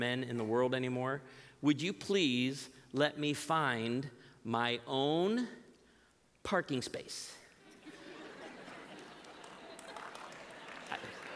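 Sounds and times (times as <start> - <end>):
speech: 0.0 - 5.6, 6.4 - 7.4
laughter: 7.6 - 11.3
scattered audience applause: 8.4 - 11.3.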